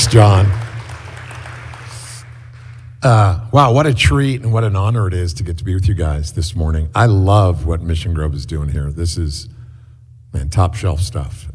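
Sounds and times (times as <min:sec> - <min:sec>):
audience applause: 0:00.0 - 0:02.9
speech: 0:00.1 - 0:00.6, 0:03.0 - 0:09.6, 0:10.3 - 0:11.5.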